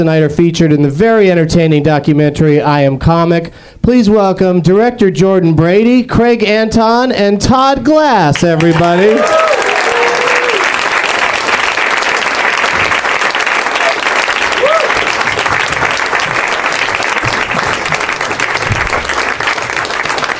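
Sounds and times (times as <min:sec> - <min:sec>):
speech: 0:00.0 - 0:09.6
studio audience clapping: 0:08.4 - 0:20.3.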